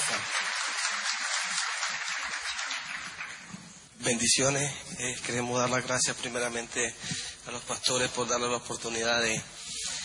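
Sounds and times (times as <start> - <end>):
audience applause: 0.0 - 3.8
speech: 4.0 - 9.6.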